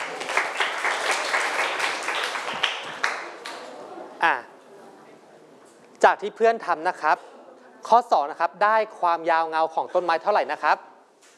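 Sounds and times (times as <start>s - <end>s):
students applauding in a classroom: 0.0s - 3.7s
speech: 4.2s - 4.4s, 6.1s - 7.3s, 7.9s - 10.9s.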